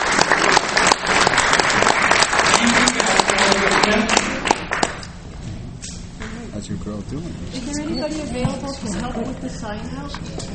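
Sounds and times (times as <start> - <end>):
audience applause: 0.0 - 5.0
speech: 7.1 - 10.5.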